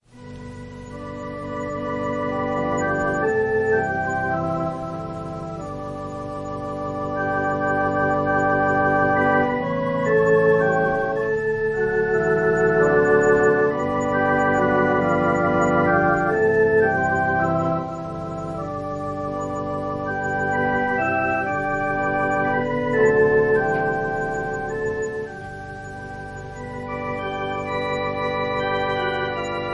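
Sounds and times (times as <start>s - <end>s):
organ prelude: 0.0s - 29.7s.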